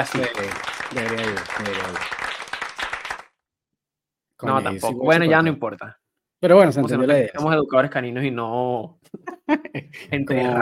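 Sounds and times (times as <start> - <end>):
speech: 0.0 - 2.2, 4.4 - 10.5
applause sound effect: 0.0 - 3.4
laughter: 9.2 - 10.5.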